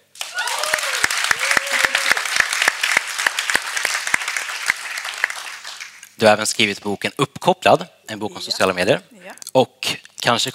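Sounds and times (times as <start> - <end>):
audience applause: 0.1 - 6.0
speech: 6.2 - 10.5.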